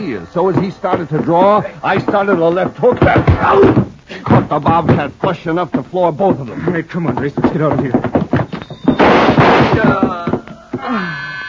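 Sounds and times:
speech: 0.0 - 8.2, 9.8 - 10.2
gunshots from a black sedan: 8.9 - 10.2.

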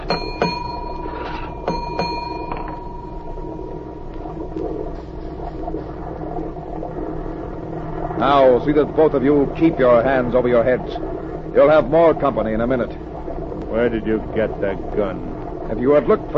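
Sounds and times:
ship engine room signal bell: 0.0 - 3.8
speech: 8.2 - 13.0, 13.7 - 16.3.

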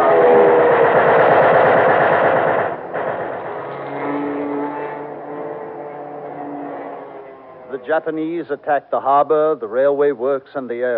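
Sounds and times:
fighter plane diving to strafe: 0.0 - 8.2
speech: 7.9 - 10.9.

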